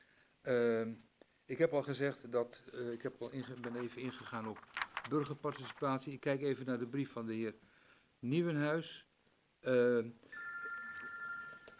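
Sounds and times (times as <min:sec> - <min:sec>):
speech: 0:00.4 - 0:10.4
mobile phone ringing: 0:10.3 - 0:11.7.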